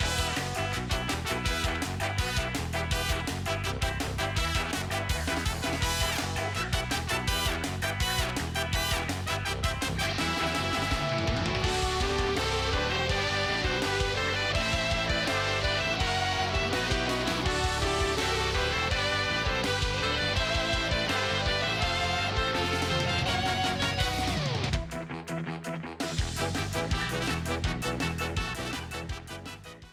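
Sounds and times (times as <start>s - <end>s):
punk remix of ballet music: 0.0s - 29.9s.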